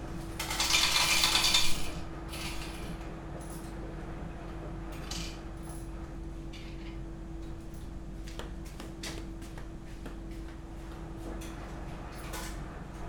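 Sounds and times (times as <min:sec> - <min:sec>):
low machine hum in a laundromat in Osaka: 0:00.0 - 0:13.0.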